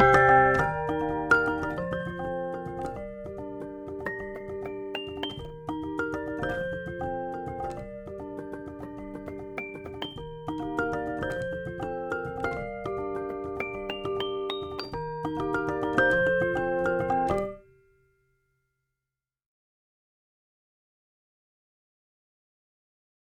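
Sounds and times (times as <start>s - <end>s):
Rhodes electric piano: 0.0s - 17.6s.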